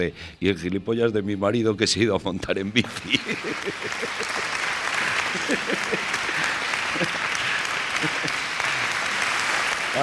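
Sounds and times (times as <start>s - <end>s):
speech: 0.0s - 4.7s, 5.3s - 7.3s
laughter: 2.8s - 9.2s
audience applause: 2.8s - 10.0s.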